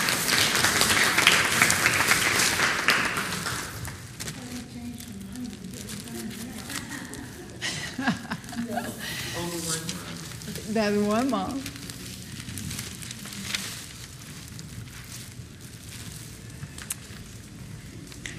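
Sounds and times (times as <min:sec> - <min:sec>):
audience applause: 0:00.0 - 0:04.2
laughter: 0:06.6 - 0:09.6
speech: 0:10.8 - 0:11.7.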